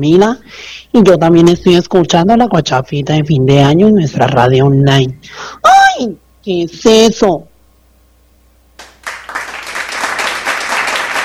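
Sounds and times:
speech: 0:00.0 - 0:07.5
applause: 0:08.8 - 0:11.2.

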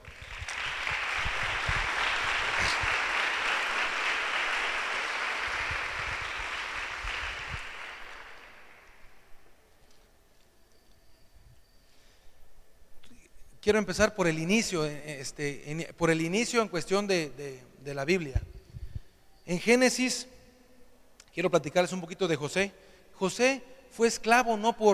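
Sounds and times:
audience applause: 0:00.0 - 0:09.1
speech: 0:13.7 - 0:18.5, 0:19.5 - 0:20.3, 0:21.4 - 0:24.9.

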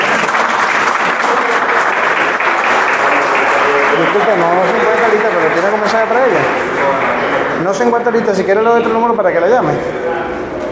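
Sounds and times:
audience applause: 0:00.0 - 0:08.0
speech: 0:07.9 - 0:10.0.

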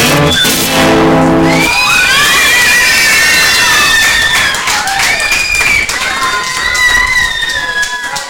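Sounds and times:
sharp whistles from the audience: 0:00.2 - 0:00.7, 0:01.5 - 0:06.0
concert audience cheering and shouting: 0:00.2 - 0:08.2
concert audience clapping: 0:01.5 - 0:08.2.

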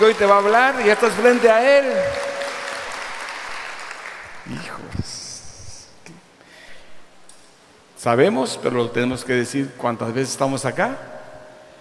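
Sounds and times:
speech: 0:00.0 - 0:02.2, 0:08.0 - 0:11.2
audience applause: 0:00.0 - 0:04.4.

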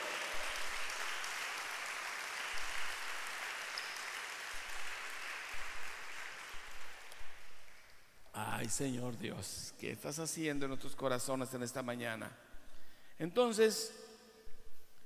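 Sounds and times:
audience applause: 0:00.0 - 0:07.9
speech: 0:08.6 - 0:12.5, 0:13.2 - 0:14.1.

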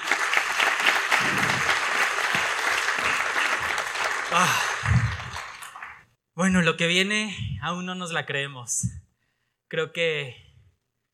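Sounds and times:
audience applause: 0:00.0 - 0:06.1
speech: 0:04.4 - 0:05.0, 0:06.4 - 0:09.0, 0:09.7 - 0:10.4.

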